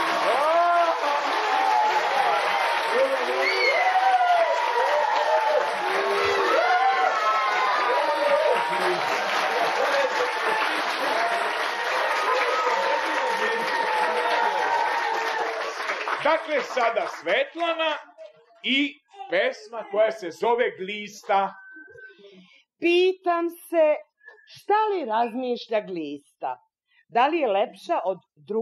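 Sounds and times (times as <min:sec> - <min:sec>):
crowd calling out: 0:00.0 - 0:15.6
audience applause for a singer at a show: 0:00.0 - 0:17.9
speech: 0:16.4 - 0:21.6, 0:22.8 - 0:28.6.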